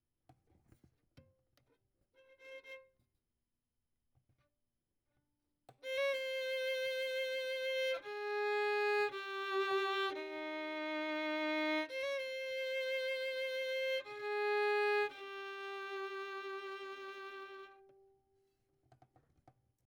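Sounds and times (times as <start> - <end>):
violin: 2.2 - 3.0, 5.8 - 18.3.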